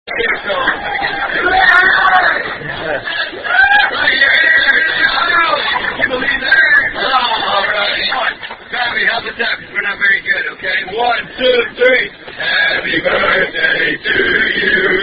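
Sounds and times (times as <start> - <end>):
laughter: 0.1 - 8.4
Outback wait staff singing birthday song: 0.4 - 15.0.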